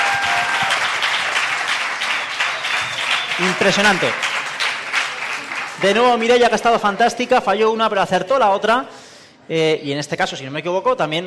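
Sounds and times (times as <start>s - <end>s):
audience applause: 0.0s - 6.9s
speech: 3.4s - 4.3s, 5.8s - 11.2s.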